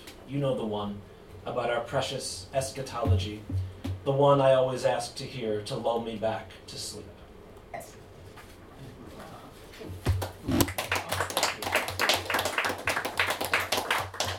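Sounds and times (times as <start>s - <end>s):
speech: 0.3s - 7.1s
audience clapping: 10.1s - 14.3s.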